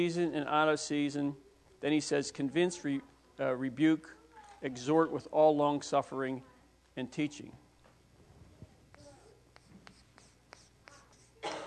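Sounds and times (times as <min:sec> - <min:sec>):
speech: 0:00.0 - 0:07.6
pen scribbling on paper: 0:08.9 - 0:11.4.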